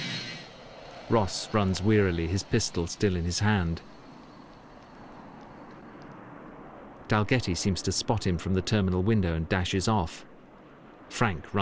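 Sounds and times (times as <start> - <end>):
thin high airplane engine whine: 0.0 - 7.8
airplane engines on an airport apron: 0.0 - 11.5
speech: 1.1 - 4.0, 7.1 - 10.3, 11.1 - 11.5.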